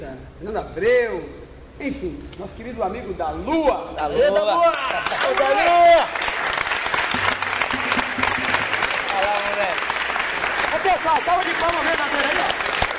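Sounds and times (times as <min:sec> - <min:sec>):
speech: 0:00.0 - 0:06.3, 0:11.0 - 0:12.5
round of applause: 0:04.6 - 0:12.9.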